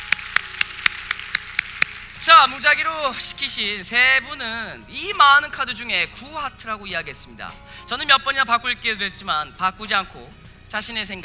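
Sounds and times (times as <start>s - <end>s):
audience clapping: 0.0s - 2.2s
speech: 2.3s - 11.2s.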